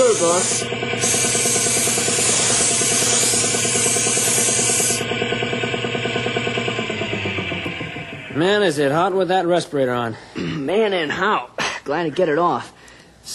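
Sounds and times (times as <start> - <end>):
paint sprayer hissing while spray painting a boat: 0.0 - 6.6
droning compressor hum: 0.0 - 13.2
speech: 0.4 - 1.2, 8.4 - 13.3.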